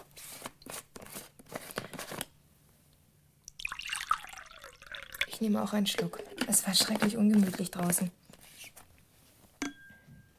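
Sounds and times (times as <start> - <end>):
milk poured from a thermos flask: 3.5 - 7.1
speech: 5.4 - 8.2.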